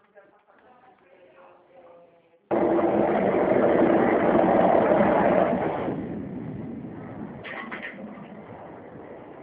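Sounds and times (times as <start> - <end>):
washing machine running: 2.5 - 6.5.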